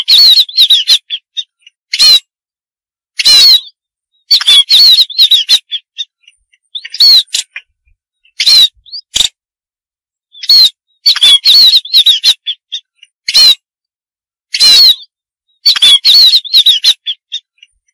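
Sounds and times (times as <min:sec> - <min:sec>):
munia harsh buzzy calls and thin wavering whistles: 0:00.0 - 0:02.3, 0:03.2 - 0:09.1, 0:10.3 - 0:13.7, 0:14.5 - 0:17.8.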